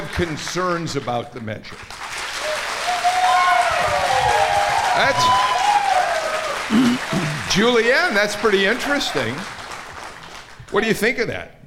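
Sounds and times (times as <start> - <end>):
speech: 0.2 - 2.1, 5.0 - 5.5, 6.7 - 9.6, 10.7 - 11.6
crowd applause: 1.7 - 10.8
faint whistles and cheers: 2.3 - 6.7.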